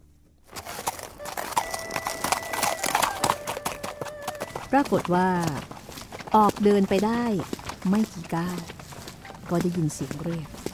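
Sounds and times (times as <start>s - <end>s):
horse hooves clip-clopping as it walks: 0.0s - 10.7s
faint ringing tone: 1.2s - 4.7s
speech: 4.7s - 8.7s, 9.5s - 10.6s.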